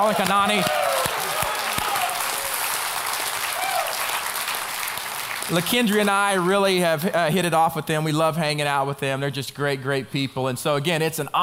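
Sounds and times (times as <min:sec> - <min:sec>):
speech: 0:00.0 - 0:01.0, 0:05.5 - 0:11.4
audience applause: 0:00.0 - 0:06.3.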